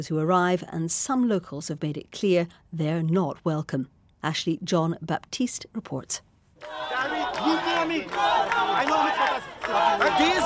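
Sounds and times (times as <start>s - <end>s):
speech: 0.0s - 10.4s
hundreds of protesters chanting calls for an election in Trinidad streets: 6.6s - 10.4s.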